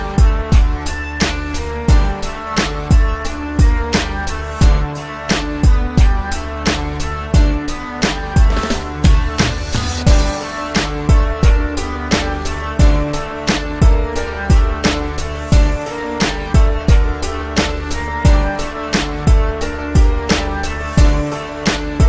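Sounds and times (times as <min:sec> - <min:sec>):
dark rap instrumental beat: 0:00.0 - 0:22.0
destroyed violin in a dark rap instrumental: 0:08.2 - 0:19.9.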